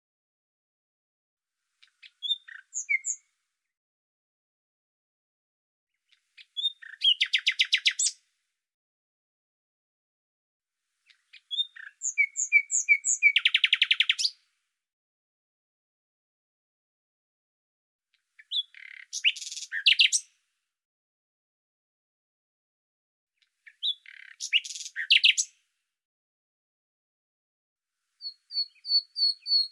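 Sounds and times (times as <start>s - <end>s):
bird song whistles and trills: 1.8s - 3.3s, 6.1s - 8.2s, 11.0s - 14.4s, 18.4s - 20.3s, 23.6s - 25.6s, 28.2s - 29.6s.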